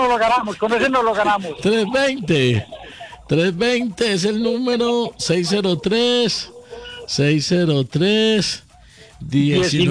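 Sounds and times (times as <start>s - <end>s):
laughter: 0.0s - 7.8s
speech: 0.2s - 8.6s, 9.2s - 9.8s
rooster crowing: 6.5s - 7.1s.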